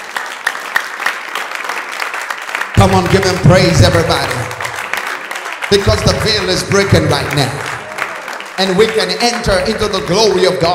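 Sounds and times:
audience clapping: 0.0 - 10.7
speech: 2.8 - 4.5, 5.7 - 7.7, 8.6 - 10.7.

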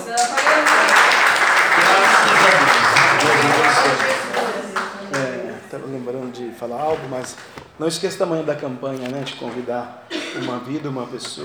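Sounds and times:
audience applause: 0.0 - 5.7
laughter: 0.0 - 11.4
speech: 6.0 - 11.4.

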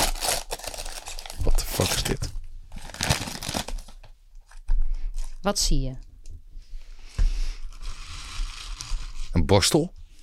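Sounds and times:
wrapping paper being torn and crinkled as a gift is unwrapped: 0.0 - 4.0, 7.7 - 9.2
speech: 1.8 - 2.3, 5.4 - 6.1, 9.5 - 10.0.

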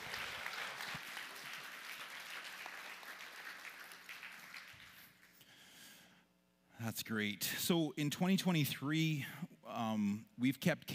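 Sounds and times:
audience applause: 0.0 - 5.4
speech: 6.8 - 10.9.

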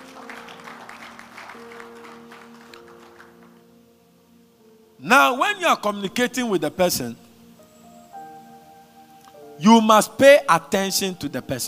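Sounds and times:
audience clapping: 0.0 - 3.7
speech: 5.0 - 7.2, 9.6 - 11.6.

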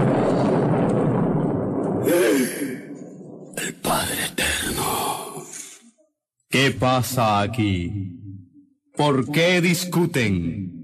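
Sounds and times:
thunderclap: 0.0 - 5.0
speech: 6.5 - 8.2, 9.0 - 10.8.

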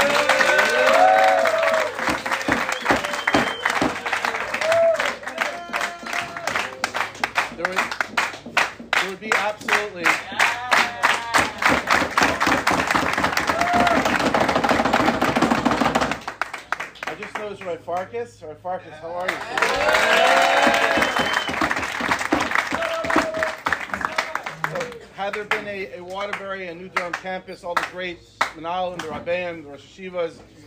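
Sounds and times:
audience applause: 0.0 - 17.4, 19.2 - 25.6
speech: 18.2 - 19.9, 25.3 - 30.5.

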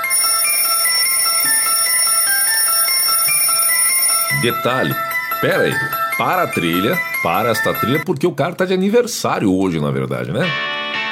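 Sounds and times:
alarm clock ringing: 0.0 - 8.0
speech: 4.4 - 10.7.

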